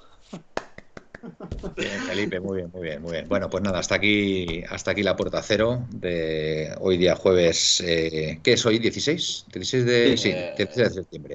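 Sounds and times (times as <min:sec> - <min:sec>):
one person clapping hands: 0:00.3 - 0:01.7
speech: 0:01.6 - 0:11.3.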